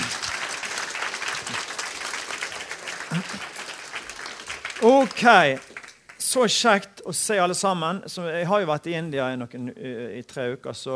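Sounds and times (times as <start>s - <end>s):
audience applause: 0.0s - 6.2s
speech: 3.1s - 3.5s, 4.8s - 5.7s, 6.3s - 10.9s.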